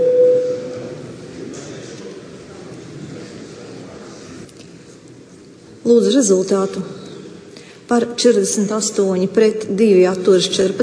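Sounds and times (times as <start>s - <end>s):
parliament voting call electronic tone: 0.0s - 0.9s
speech: 5.9s - 7.0s, 7.9s - 10.8s.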